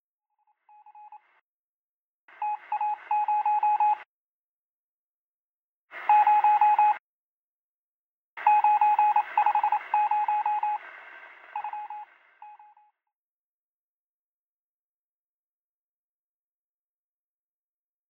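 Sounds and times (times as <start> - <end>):
morse code beeps: 2.4 - 4.0, 6.1 - 7.0, 8.4 - 10.8, 11.6 - 12.8.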